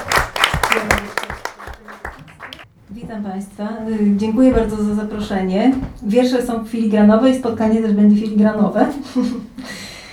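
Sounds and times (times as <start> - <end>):
audience clapping: 0.0 - 2.7
speech: 3.1 - 9.8.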